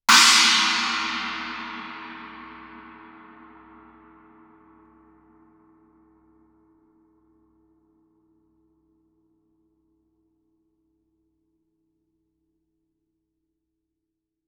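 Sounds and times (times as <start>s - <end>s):
Chinese suspended cymbal struck loudly with stick shoulder: 0.0s - 4.6s.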